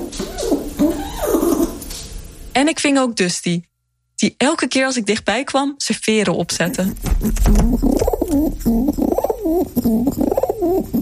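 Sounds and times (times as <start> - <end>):
pigeons cooing: 0.0 - 1.8, 7.0 - 11.0
speech: 2.6 - 11.0.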